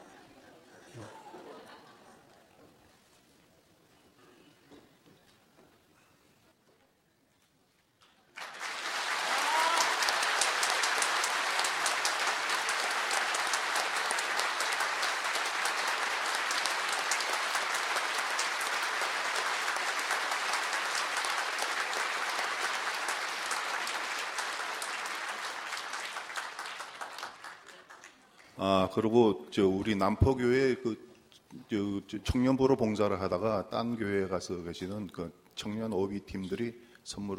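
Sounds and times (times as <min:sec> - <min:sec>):
laughter: 0:00.0 - 0:02.6
audience applause: 0:08.3 - 0:28.5
speech: 0:28.6 - 0:31.1, 0:31.7 - 0:37.3.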